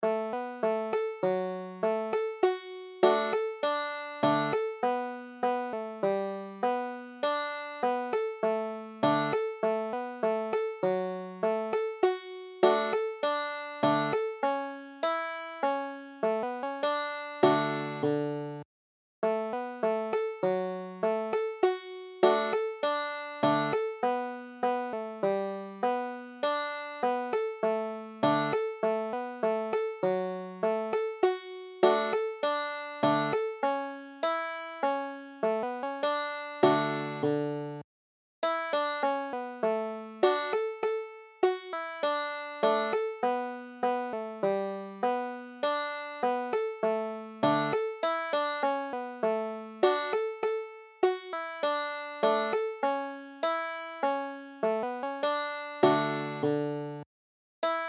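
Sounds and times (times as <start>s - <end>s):
banjo: 0.0s - 18.6s, 19.2s - 37.8s, 38.4s - 57.0s, 57.6s - 57.8s.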